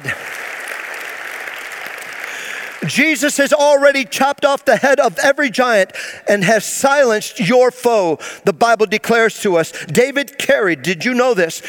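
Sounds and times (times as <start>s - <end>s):
audience applauding: 0.0s - 3.3s
speech: 2.9s - 11.6s.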